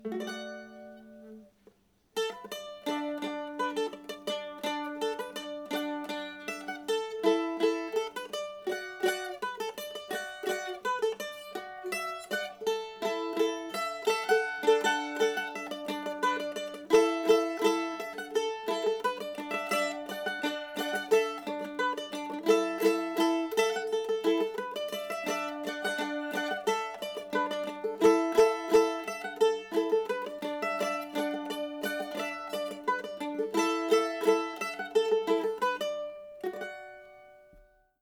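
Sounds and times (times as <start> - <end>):
bent top mandolin playing a folk tune: 0.0 - 38.0.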